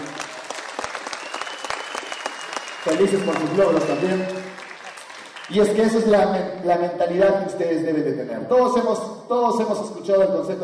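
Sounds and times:
audience applause: 0.0 - 6.2
speech: 2.8 - 4.5, 5.5 - 10.6.

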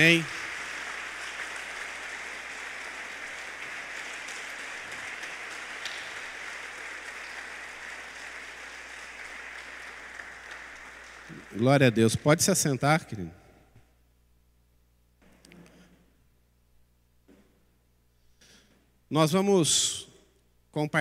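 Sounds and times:
speech: 0.0 - 0.4, 11.5 - 13.4, 19.1 - 20.1, 20.7 - 20.9
audience applause: 0.0 - 12.5.

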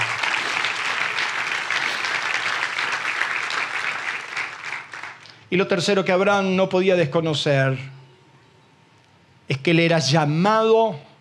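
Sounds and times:
audience applause: 0.0 - 5.3
speech: 5.5 - 8.0, 9.6 - 11.1.

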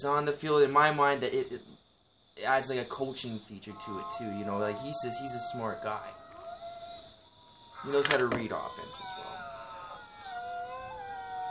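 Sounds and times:
speech: 0.0 - 1.8, 2.4 - 6.2, 7.8 - 9.4
pack of wolves howling: 3.5 - 11.4.

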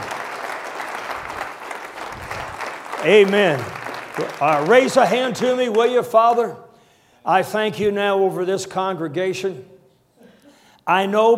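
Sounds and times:
audience clapping: 0.0 - 6.4
speech: 3.0 - 6.6, 7.2 - 9.7, 10.9 - 11.3.

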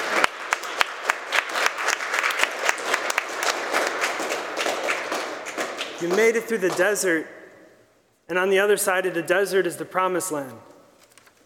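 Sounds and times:
crowd round of applause: 0.0 - 7.0
speech: 6.0 - 7.4, 8.3 - 10.7.

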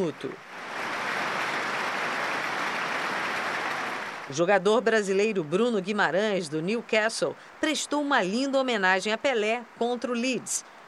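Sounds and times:
speech: 0.0 - 0.6, 4.3 - 10.8
large stadium crowd applauding: 0.6 - 4.3.

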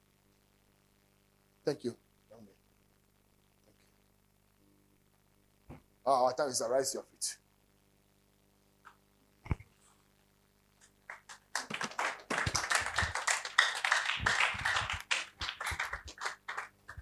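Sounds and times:
speech: 1.6 - 2.6, 6.1 - 7.4
crowd of people clapping: 10.8 - 17.0.

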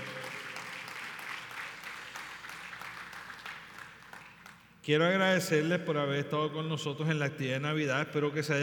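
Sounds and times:
audience applause: 0.0 - 4.6
speech: 4.8 - 8.6.

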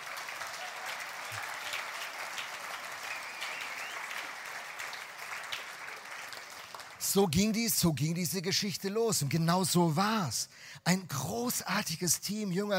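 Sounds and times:
audience applause: 0.0 - 7.2
speech: 7.0 - 12.7.

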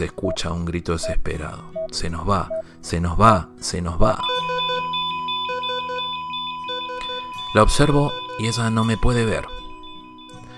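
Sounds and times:
speech: 0.0 - 4.5, 7.6 - 9.6
electronic alarm beeps: 4.2 - 10.5
steady high-pitched tone: 4.2 - 10.5.

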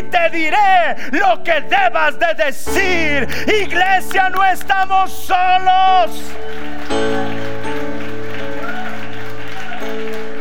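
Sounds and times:
speech: 0.1 - 7.4
sustained keyboard chords: 2.5 - 10.3
audience applause: 6.1 - 10.3.

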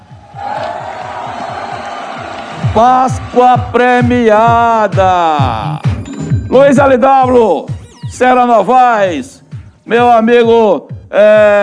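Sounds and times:
applause and cheering: 0.0 - 3.8
speech: 2.8 - 5.9, 6.5 - 11.6.

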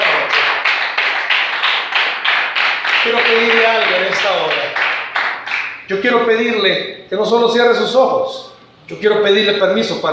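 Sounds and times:
audience applause: 0.0 - 5.8
speech: 3.0 - 4.8, 5.9 - 10.1.

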